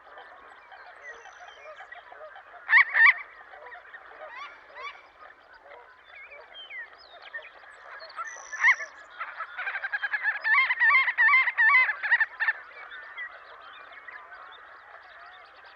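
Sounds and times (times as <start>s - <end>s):
Marbled godwit calls: 0.2s - 5.0s, 8.2s - 15.6s.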